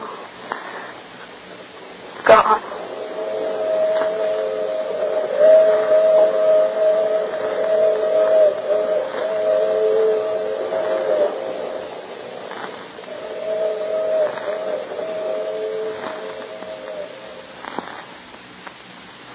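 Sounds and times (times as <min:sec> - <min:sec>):
train departing into the distance: 0:02.3 - 0:17.6.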